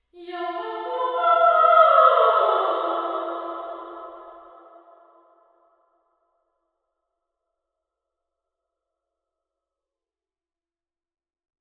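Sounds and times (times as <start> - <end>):
person singing in a marble hall: 0.0 - 5.7.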